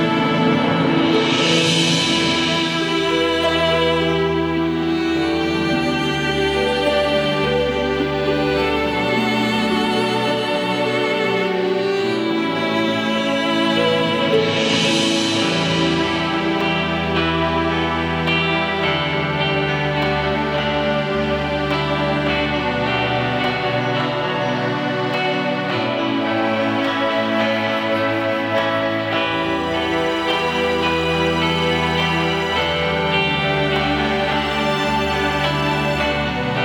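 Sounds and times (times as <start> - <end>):
emotional uplifting music: 0.0 - 36.6.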